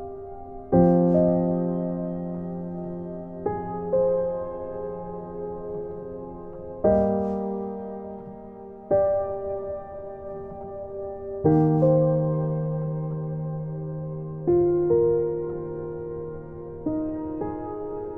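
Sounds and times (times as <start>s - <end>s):
soft piano: 0.0s - 18.1s.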